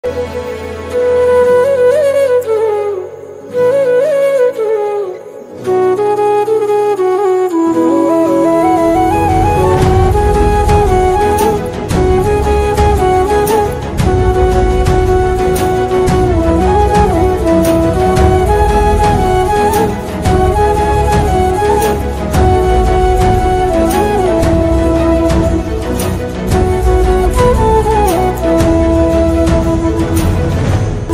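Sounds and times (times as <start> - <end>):
flute instrumental ringtone: 1.0 - 31.1.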